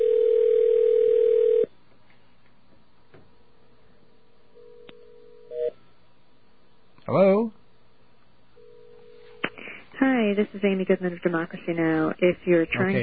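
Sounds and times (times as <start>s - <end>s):
telephone ringing: 0.0s - 1.7s, 4.6s - 5.8s, 8.6s - 9.4s
speech: 10.3s - 13.0s.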